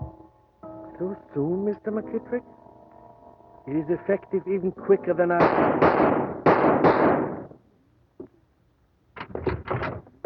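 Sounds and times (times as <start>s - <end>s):
speech: 1.0s - 2.6s, 3.7s - 6.4s
gunshot in a radio drama: 5.4s - 7.5s.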